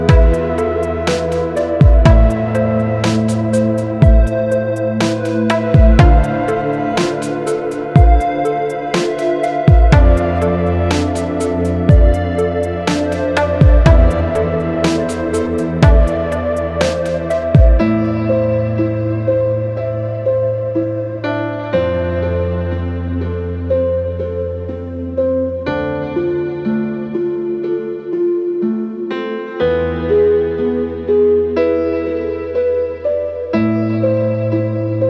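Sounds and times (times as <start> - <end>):
ambient techno house music: 0.0 - 35.0.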